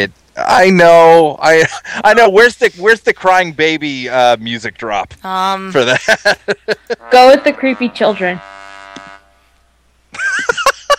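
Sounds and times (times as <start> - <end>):
speech: 0.0 - 8.6
laughter: 1.4 - 2.8, 5.8 - 7.1, 10.2 - 10.9
short steady buzzing tone: 6.9 - 9.8
angry cow mooing sound effect: 7.0 - 9.4.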